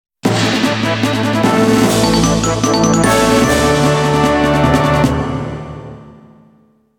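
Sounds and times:
reward fanfare: 0:00.7 - 0:05.0.

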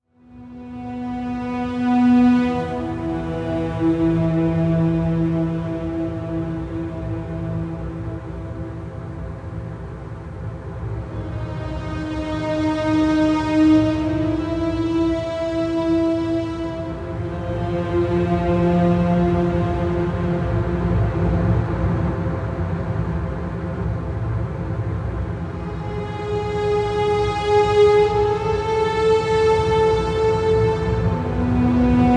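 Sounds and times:
strings: 0:00.0 - 0:32.1.

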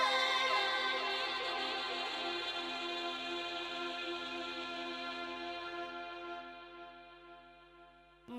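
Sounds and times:
person singing: 0:00.0 - 0:05.8.

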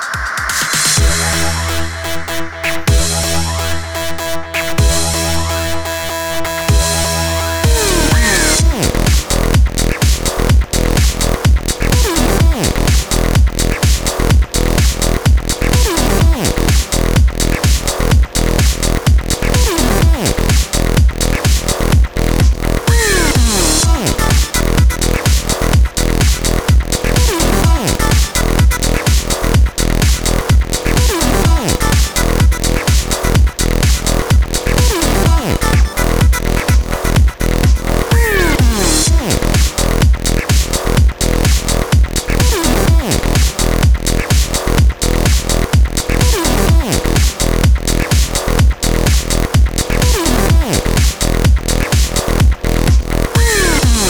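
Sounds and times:
China voice sample: 0:00.1 - 0:54.0.

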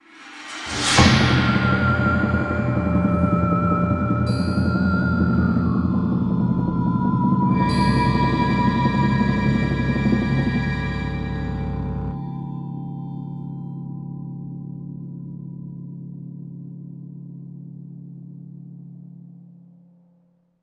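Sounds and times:
sitar: 0:00.7 - 0:15.3.

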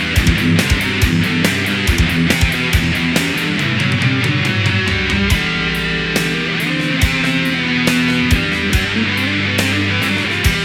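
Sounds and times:
boss finished game music: 0:00.2 - 0:10.6.

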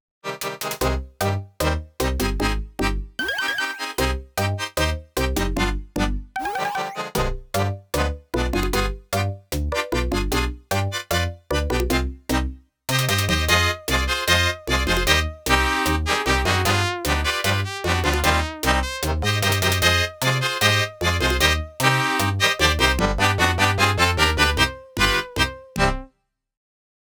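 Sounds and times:
tango music: 0:00.8 - 0:02.9, 0:03.8 - 0:26.0.

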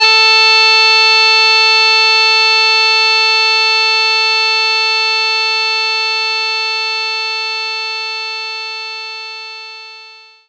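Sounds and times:
accordion note A4: 0:00.0 - 0:07.3.

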